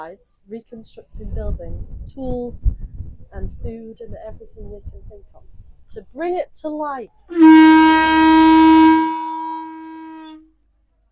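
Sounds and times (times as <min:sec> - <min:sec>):
speech: 0:00.0 - 0:09.0
starting horn at an Iron Age reconstruction museum: 0:07.3 - 0:10.5.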